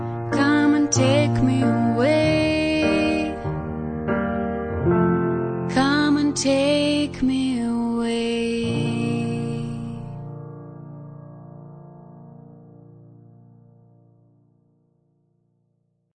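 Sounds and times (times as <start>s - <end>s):
romantic, light, joyful wedding song: 0.0s - 12.2s.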